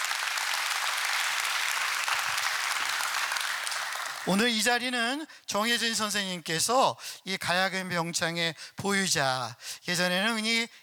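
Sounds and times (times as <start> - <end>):
audience applause: 0.0 - 4.4
speech: 4.2 - 10.8.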